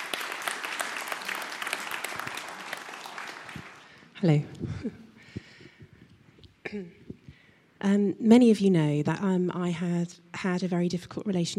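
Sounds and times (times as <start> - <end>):
room full of people clapping: 0.0 - 4.2
speech: 4.2 - 5.0, 6.7 - 7.0, 7.8 - 11.5.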